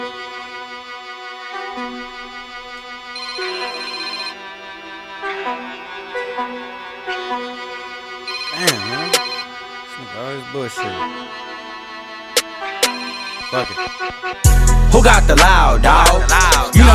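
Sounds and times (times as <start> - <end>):
phone ringtone playing an electronic tune: 3.1 - 5.7, 8.2 - 9.9, 12.6 - 14.5
speech: 10.7 - 11.4, 13.5 - 16.5.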